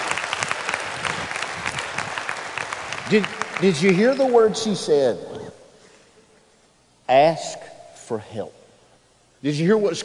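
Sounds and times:
audience applause: 0.0s - 4.4s
speech: 3.1s - 5.3s, 7.1s - 8.6s, 9.4s - 10.0s.

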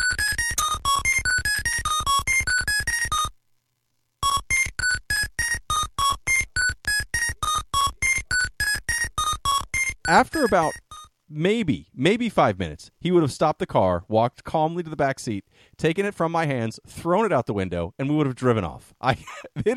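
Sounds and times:
frantic electronic video game bleeps and blips: 0.0s - 3.3s, 4.2s - 11.1s
speech: 10.1s - 19.7s.

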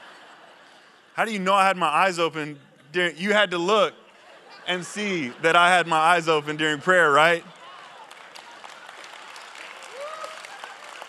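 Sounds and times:
laughter: 0.0s - 7.6s, 10.0s - 11.0s
speech: 1.2s - 4.0s, 4.7s - 7.6s
church audience clapping: 5.8s - 11.0s.

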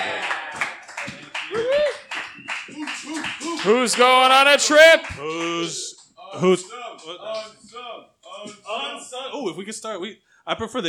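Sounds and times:
audience applause: 0.0s - 5.6s
speech: 3.6s - 7.6s, 9.3s - 10.8s.

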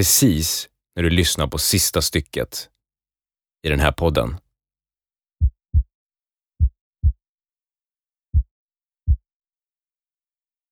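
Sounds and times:
speech: 0.0s - 2.8s, 3.6s - 4.4s
low thudding heartbeat in paired beats: 6.6s - 7.2s, 8.3s - 8.5s.

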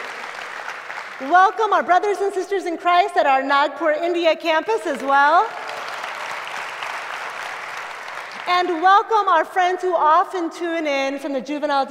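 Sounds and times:
church congregation applause welcoming its Wyoming campus: 0.0s - 1.2s, 5.4s - 8.8s
speech: 1.2s - 5.6s, 8.5s - 11.8s.

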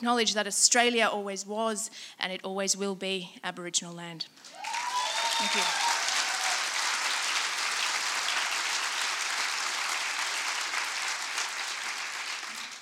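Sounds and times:
speech: 0.0s - 4.8s, 5.4s - 5.8s
audience applause: 4.5s - 12.8s.

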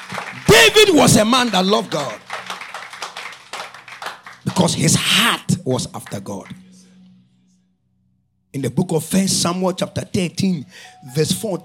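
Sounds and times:
audience clapping: 0.0s - 6.6s
speech: 0.7s - 2.3s, 4.5s - 6.6s, 8.5s - 11.6s.

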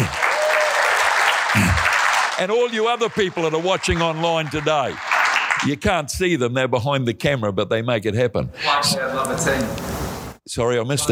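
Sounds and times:
audience hand clapping: 0.0s - 6.0s
speech: 2.4s - 11.1s.

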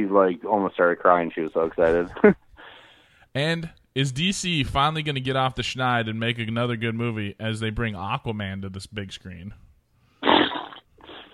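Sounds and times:
speech: 0.0s - 2.4s, 3.4s - 9.6s
voice blowing a raspberry-style fart noise: 10.2s - 11.3s.

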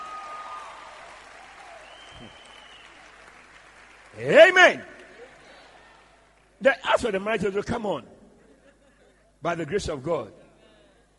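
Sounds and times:
audience clapping: 0.0s - 6.6s
speech: 2.2s - 2.4s, 4.2s - 4.9s, 6.6s - 8.1s, 9.4s - 10.4s.

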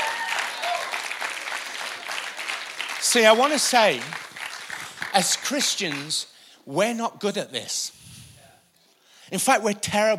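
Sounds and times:
audience applause: 0.0s - 6.2s
speech: 3.1s - 4.3s, 5.2s - 8.0s, 9.3s - 10.1s.

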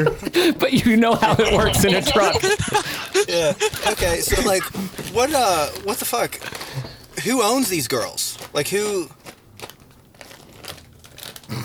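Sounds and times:
laughter: 0.0s - 5.7s
speech: 0.0s - 6.6s, 7.2s - 9.2s
candy wrapper crinkling: 2.4s - 11.6s.

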